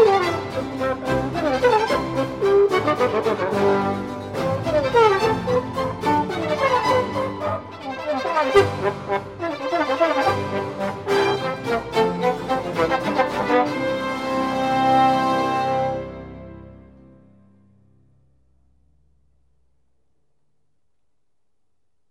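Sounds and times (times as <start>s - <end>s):
trombone: 0.0s - 17.0s.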